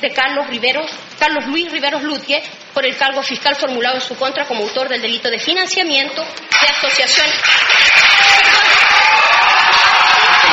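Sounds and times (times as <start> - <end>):
speech: 0.0 - 8.7
applause in a courtroom: 6.5 - 10.5.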